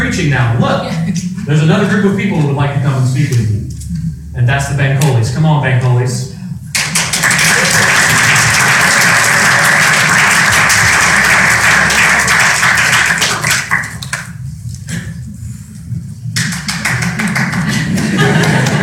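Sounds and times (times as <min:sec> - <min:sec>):
speech: 0:00.2 - 0:03.6, 0:04.4 - 0:06.3
laughter: 0:00.6 - 0:01.6, 0:17.2 - 0:18.8
audience applause: 0:06.7 - 0:14.4, 0:16.4 - 0:18.8.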